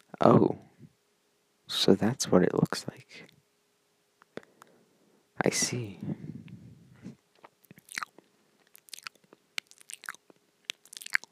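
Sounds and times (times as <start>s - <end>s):
speech: 0.2s - 0.6s, 1.8s - 3.4s, 5.5s - 6.4s
brief low rumble: 5.9s - 7.2s
person chewing a chicken nugget: 7.4s - 11.3s.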